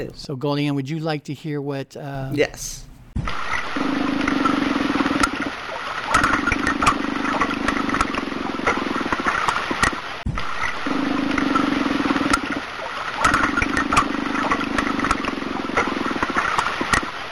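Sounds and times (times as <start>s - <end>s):
speech: 0.0s - 3.3s
deep underwater calls of unknown aquatic animal: 3.2s - 17.3s
steady crackling and hiss: 3.2s - 17.3s
sharp clicks: 4.2s - 17.2s.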